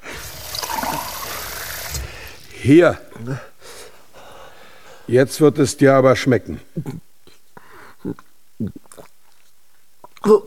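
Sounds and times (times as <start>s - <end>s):
water running from a tap: 0.2s - 2.0s
speech: 2.6s - 3.5s, 5.1s - 7.1s, 8.0s - 8.8s, 10.2s - 10.4s.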